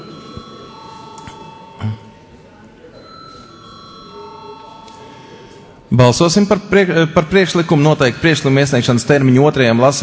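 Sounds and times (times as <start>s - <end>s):
parliament chamber electric bell ringing before a vote: 0.0s - 1.8s, 3.0s - 5.5s
speech: 5.9s - 10.0s.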